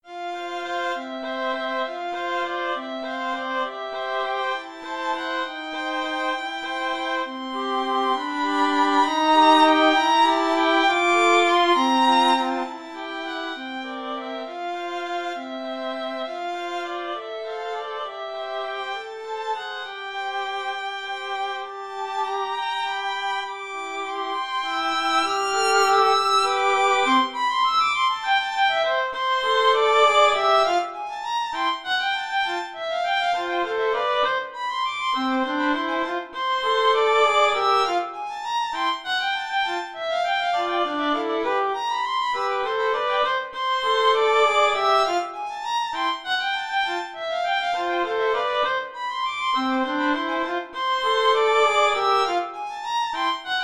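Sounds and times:
violin trio waltz: 0.0 - 53.6.

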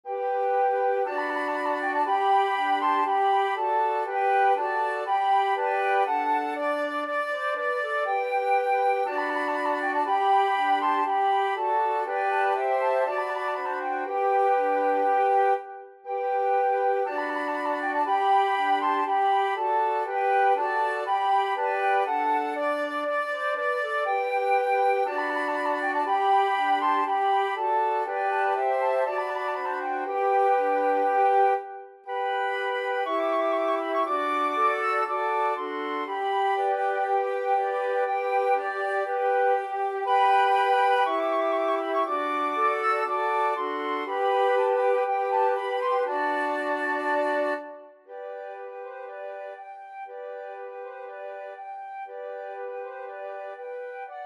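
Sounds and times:
flute quartet: 0.0 - 54.2.

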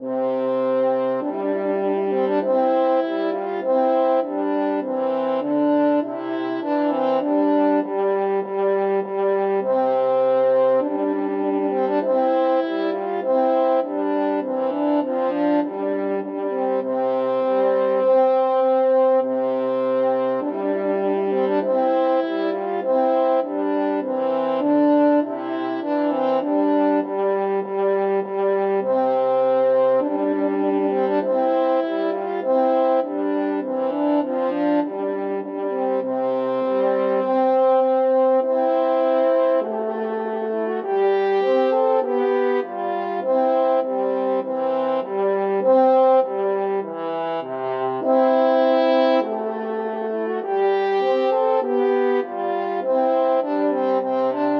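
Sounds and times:
french horn duet: 0.0 - 54.5.

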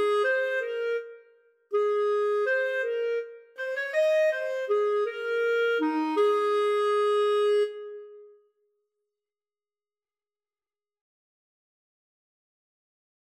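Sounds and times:
clarinet duet: 0.0 - 8.3.

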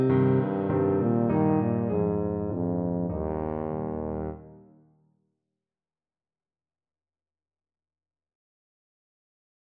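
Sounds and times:
tuba playing a waltz: 0.9 - 4.6.

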